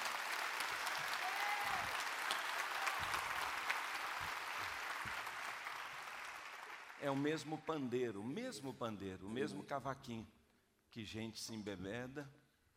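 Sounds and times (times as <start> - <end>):
crowd applause: 0.0 - 7.5
speech: 7.0 - 12.4.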